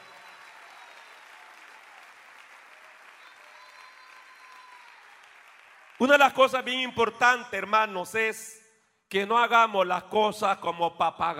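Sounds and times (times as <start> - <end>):
audience applause: 0.0 - 6.2
speech: 6.0 - 11.3.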